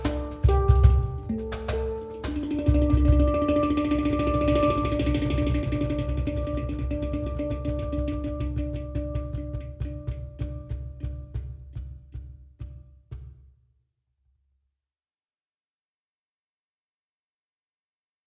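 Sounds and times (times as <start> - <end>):
cajon: 0.0 - 13.4
hang drum: 0.0 - 13.5.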